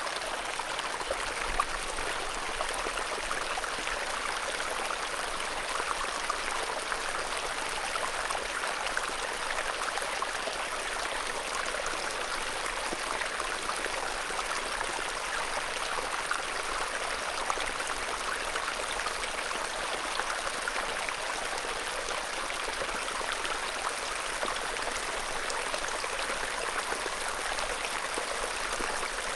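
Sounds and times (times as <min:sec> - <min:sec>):
small calm water stream: 0:00.0 - 0:29.3.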